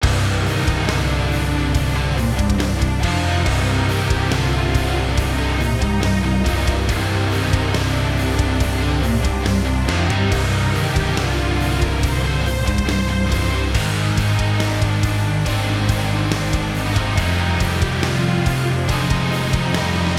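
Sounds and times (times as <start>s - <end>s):
orchestral rock music: 0.0s - 20.1s.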